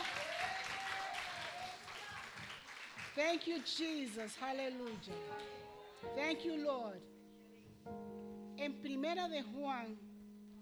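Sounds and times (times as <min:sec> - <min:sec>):
audience applauding: 0:00.0 - 0:06.1
speech: 0:03.2 - 0:07.1, 0:08.6 - 0:10.1.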